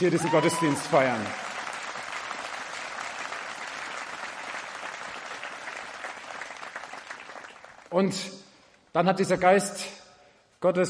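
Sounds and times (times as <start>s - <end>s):
speech: 0.0s - 1.4s, 7.9s - 8.4s, 9.0s - 10.0s, 10.6s - 10.8s
audience applause: 0.0s - 7.9s.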